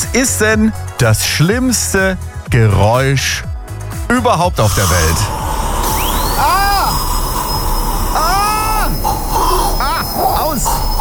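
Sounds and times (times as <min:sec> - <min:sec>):
speech: 0:00.1 - 0:03.5, 0:04.1 - 0:05.4
dentist's drill whining: 0:04.6 - 0:11.0
hiss: 0:04.6 - 0:11.0.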